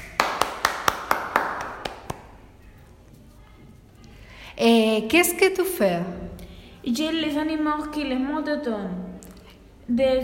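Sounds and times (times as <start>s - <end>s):
applause: 0.0s - 2.3s
speech: 4.6s - 6.2s, 6.8s - 9.0s, 9.9s - 10.2s.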